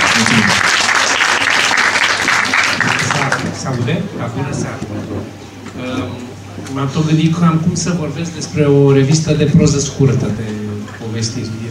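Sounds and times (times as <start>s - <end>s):
audience applause: 0.0s - 3.8s
speech: 0.2s - 0.6s, 3.8s - 6.0s, 6.7s - 10.6s, 11.2s - 11.7s.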